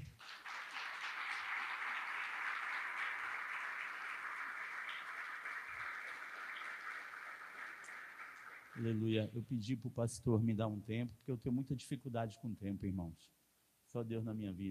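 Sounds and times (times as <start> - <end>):
audience applauding: 0.0 - 9.1
speech: 8.8 - 14.6.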